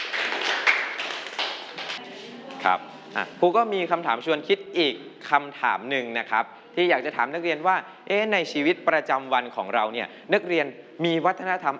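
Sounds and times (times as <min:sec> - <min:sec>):
students clapping in a classroom: 0:00.0 - 0:02.7
speech: 0:02.6 - 0:11.7.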